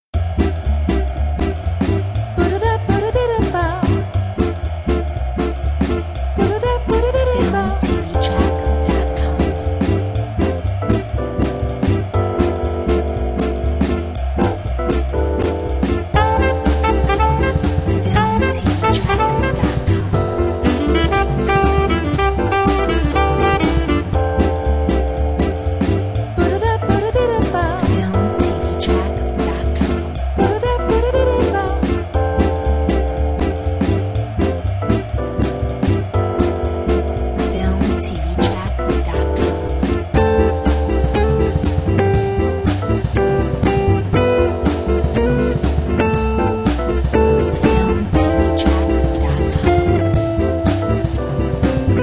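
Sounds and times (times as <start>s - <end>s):
swing music: 0.0s - 52.0s.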